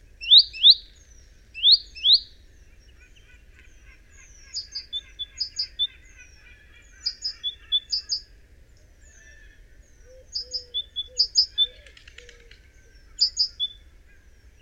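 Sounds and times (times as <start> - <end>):
great tit calling: 0.2 - 2.4, 3.8 - 8.2, 10.2 - 11.8, 13.0 - 13.8.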